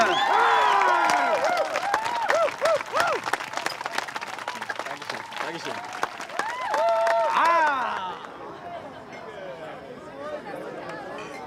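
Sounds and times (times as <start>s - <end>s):
audience applause: 0.0s - 8.4s.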